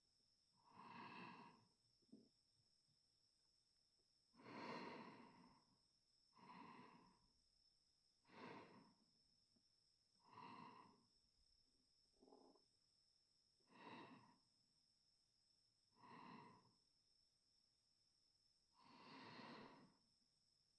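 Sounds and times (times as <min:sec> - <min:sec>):
sleeping breath: 0:00.7 - 0:01.6, 0:04.4 - 0:05.7, 0:06.4 - 0:07.3, 0:08.2 - 0:09.0, 0:10.2 - 0:11.1, 0:13.6 - 0:14.4, 0:15.9 - 0:16.8, 0:18.8 - 0:20.0.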